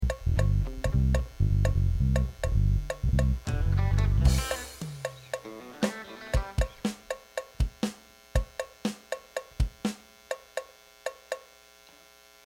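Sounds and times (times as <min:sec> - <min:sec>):
buzzing noise: 0:00.0 - 0:12.4.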